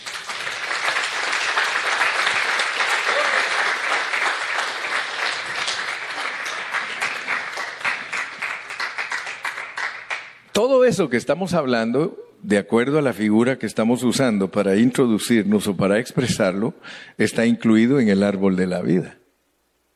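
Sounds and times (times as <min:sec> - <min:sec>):
audience applause: 0:00.0 - 0:10.4
speech: 0:10.6 - 0:19.2.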